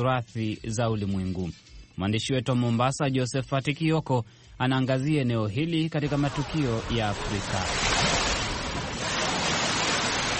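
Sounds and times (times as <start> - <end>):
speech: 0.0 - 8.0
surf rushing along the Indian Ocean shore at Mombasa Old Town: 6.1 - 10.3.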